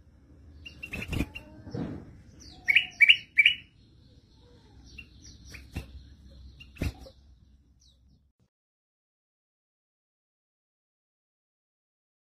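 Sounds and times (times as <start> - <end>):
golden-fronted leafbird singing: 0.4 - 8.3.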